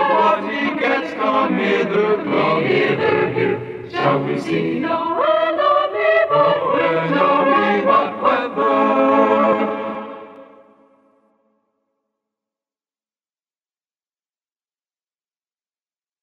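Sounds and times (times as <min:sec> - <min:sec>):
chorale: 0:00.0 - 0:11.6.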